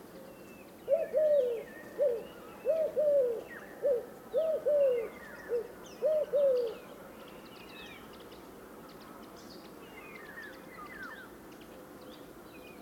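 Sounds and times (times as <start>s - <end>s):
Eurasian collared dove Streptopelia decaocto: 0.9s - 6.8s.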